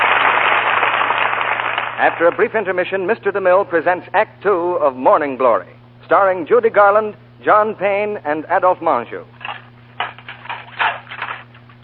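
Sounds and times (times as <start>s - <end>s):
low electrical hum: 0.0s - 11.8s
speech: 2.0s - 9.4s
dinner dishes clinking and clattering while being washed: 9.4s - 11.6s.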